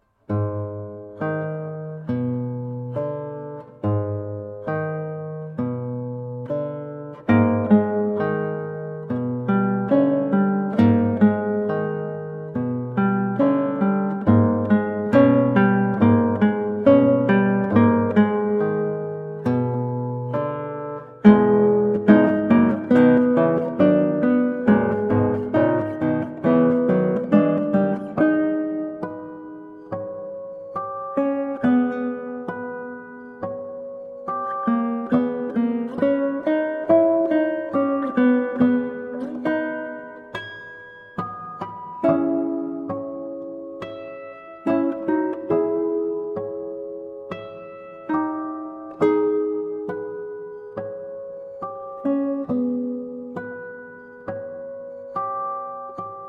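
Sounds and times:
prelude in G sharp minor: 0:00.3 - 0:56.2.

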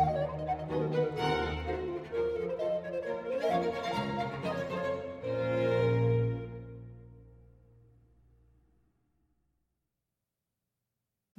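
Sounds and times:
baroque instrumental piece: 0:00.0 - 0:07.4.

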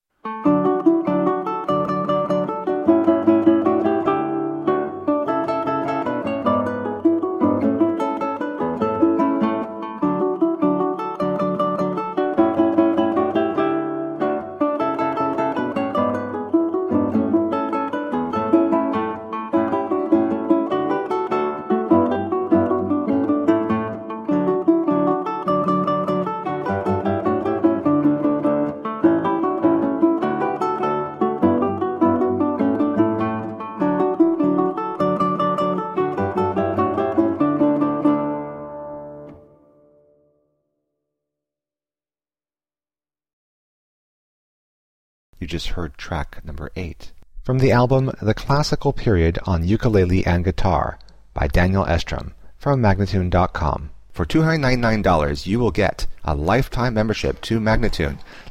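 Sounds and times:
ukulele playing a classical trio piece: 0:00.1 - 0:40.2, 0:45.4 - 0:58.4
guitar playing a classical trio piece: 0:00.3 - 0:40.3
person speaking: 0:45.4 - 0:58.4.

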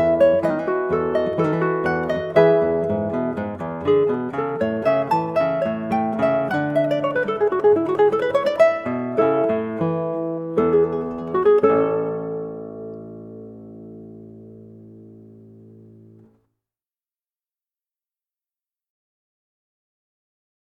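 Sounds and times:
guitar playing a prelude: 0:00.0 - 0:16.4
ukulele playing a prelude: 0:00.0 - 0:16.4.

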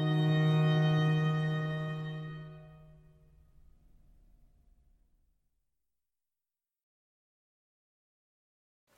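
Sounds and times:
cantata minuet: 0:00.0 - 0:03.7.

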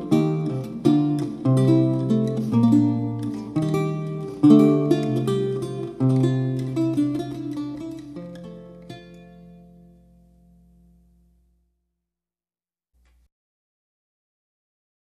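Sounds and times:
lute playing: 0:00.0 - 0:11.5.

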